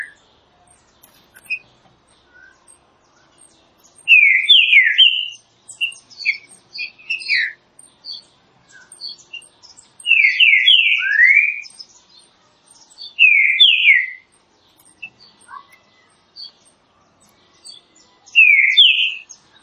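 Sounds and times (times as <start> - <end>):
small birds chirping: 0.0 - 19.6
green-winged saltator whistling phrases: 4.1 - 7.6, 10.1 - 11.8, 13.2 - 14.2, 18.3 - 19.3.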